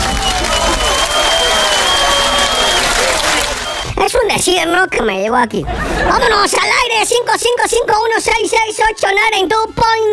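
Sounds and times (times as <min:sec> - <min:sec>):
crowd applause: 0:00.0 - 0:03.9
speech: 0:04.0 - 0:10.1.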